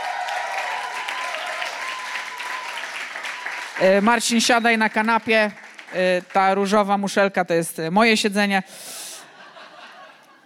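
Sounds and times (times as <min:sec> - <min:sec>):
audience applause: 0:00.0 - 0:06.5
speech: 0:03.8 - 0:09.0
laughter: 0:09.2 - 0:10.4.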